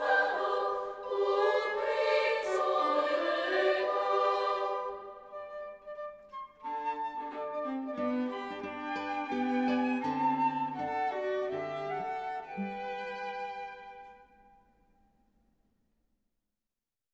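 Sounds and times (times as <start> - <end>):
choir singing: 0.0 - 13.2.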